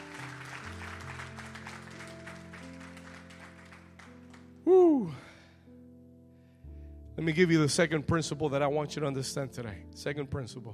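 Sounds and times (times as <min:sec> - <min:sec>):
audience hand clapping: 0:00.0 - 0:04.6
speech: 0:07.2 - 0:10.7.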